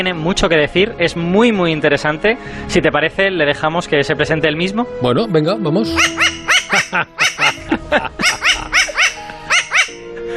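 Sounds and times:
speech: 0.0s - 8.8s
New Caledonian crow call: 5.9s - 10.1s
laughter: 6.5s - 9.6s.

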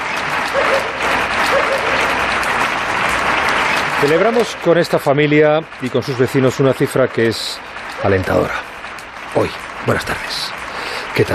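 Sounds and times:
family applauding from a terrace: 0.0s - 11.3s
speech: 4.0s - 8.7s, 9.3s - 10.6s.

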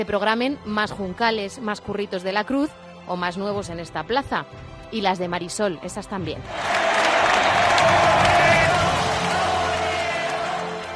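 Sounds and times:
speech: 0.0s - 8.2s
large crowd ovation applause: 6.5s - 10.9s.

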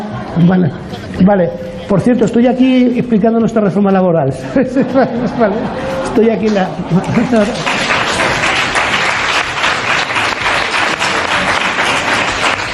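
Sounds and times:
laughter: 0.0s - 12.7s
speech: 0.4s - 7.8s
audience applause: 5.3s - 12.7s.

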